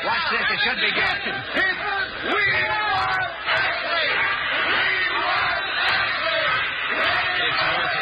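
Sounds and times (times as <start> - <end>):
speech: 0.2 - 1.6
group of kids cheering: 2.4 - 7.9.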